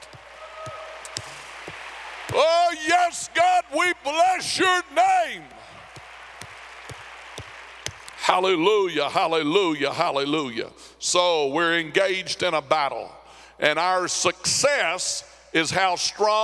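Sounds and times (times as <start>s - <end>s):
audience clapping hands: 0.0s - 8.7s
speech: 2.4s - 5.6s, 8.3s - 16.4s.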